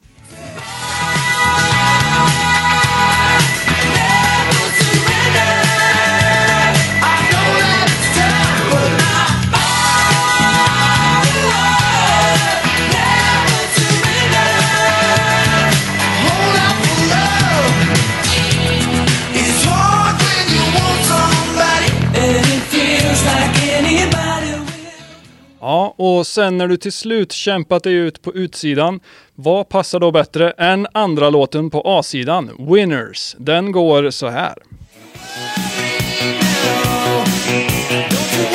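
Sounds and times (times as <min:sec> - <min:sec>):
1980s rock song: 0:00.0 - 0:25.5, 0:34.9 - 0:38.5
speech: 0:26.2 - 0:35.6, 0:37.4 - 0:37.8.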